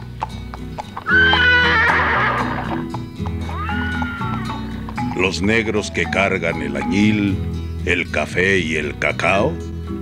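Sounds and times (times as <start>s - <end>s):
hooves clip-clopping: 0.0s - 7.3s
white horse neighing: 1.0s - 4.8s
speech: 5.2s - 9.7s.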